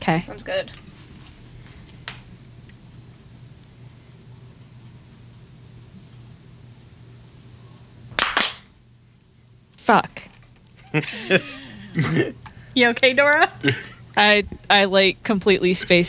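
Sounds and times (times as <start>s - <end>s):
speech: 0.0s - 0.9s, 9.9s - 10.3s, 10.9s - 16.0s
hand claps for recording sync: 8.1s - 8.7s
laughter: 10.8s - 12.4s, 13.6s - 14.0s.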